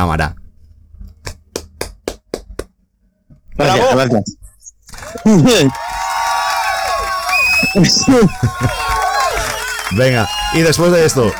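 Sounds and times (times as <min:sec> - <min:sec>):
speech: 0:00.0 - 0:00.4, 0:03.6 - 0:04.4, 0:05.2 - 0:06.0, 0:07.7 - 0:08.9, 0:09.9 - 0:11.3
single pair of hands clapping: 0:01.2 - 0:02.7, 0:04.9 - 0:11.3
laughter: 0:04.9 - 0:11.3.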